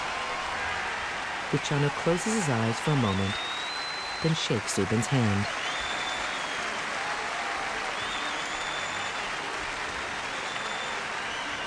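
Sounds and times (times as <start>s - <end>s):
huge stadium crowd applauding: 0.0s - 11.6s
speech: 1.5s - 3.5s, 4.2s - 5.6s.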